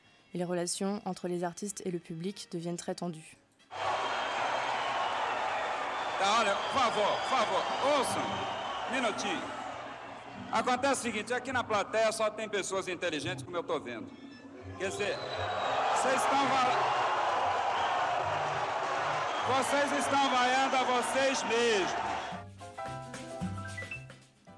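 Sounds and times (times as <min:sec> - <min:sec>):
speech: 0:00.3 - 0:03.4, 0:06.2 - 0:09.6, 0:10.4 - 0:17.0, 0:19.5 - 0:22.1
audience booing at a festival: 0:03.7 - 0:10.4, 0:14.9 - 0:22.4.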